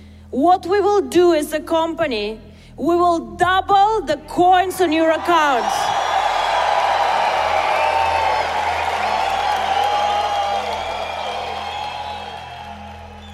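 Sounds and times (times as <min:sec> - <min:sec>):
speech: 0:00.3 - 0:06.0
audience cheering wildly: 0:05.0 - 0:13.3.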